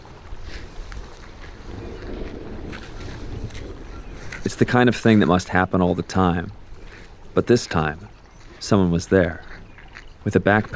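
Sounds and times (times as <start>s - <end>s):
thunderstorm rolling in: 1.4s - 4.6s
speech: 4.6s - 6.6s, 7.4s - 9.5s, 10.2s - 10.7s.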